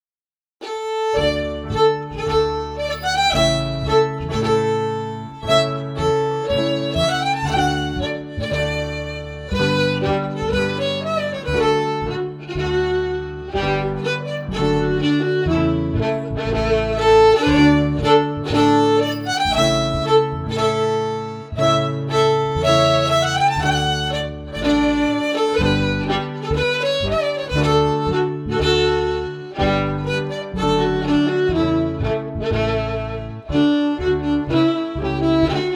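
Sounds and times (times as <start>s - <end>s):
fiddle: 0.6s - 35.7s
piano: 0.6s - 35.7s.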